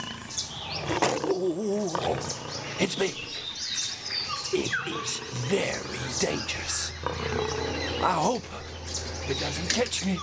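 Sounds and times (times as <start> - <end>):
lion roaring in a jungle: 0.0 - 2.9, 4.9 - 8.4
speech: 1.5 - 3.4, 4.5 - 10.2.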